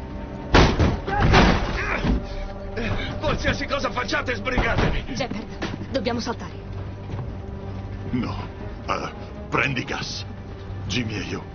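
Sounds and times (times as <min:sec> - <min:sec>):
banging on a door: 0:00.5 - 0:02.2
speech: 0:03.4 - 0:06.6, 0:08.1 - 0:10.3, 0:10.9 - 0:11.5.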